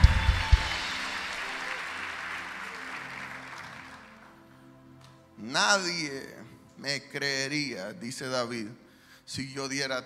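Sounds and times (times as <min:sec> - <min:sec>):
audience applause: 0:00.0 - 0:04.4
speech: 0:05.4 - 0:10.0.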